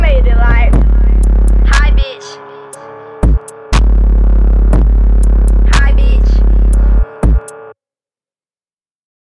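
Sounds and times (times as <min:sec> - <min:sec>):
48Hz low bass tone: 0:00.0 - 0:02.1, 0:03.2 - 0:07.5.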